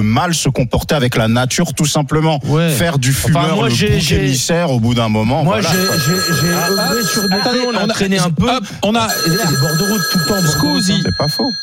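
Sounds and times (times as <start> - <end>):
speech: 0.0 - 11.6
telephone ringing for an incoming call: 5.5 - 11.6.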